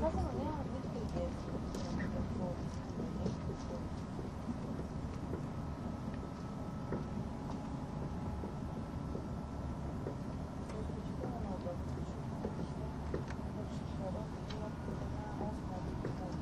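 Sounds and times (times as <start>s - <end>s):
faint murmuring voices: 0.0s - 5.5s, 10.6s - 16.4s
train rumbling along the Gotthard route: 0.0s - 16.4s.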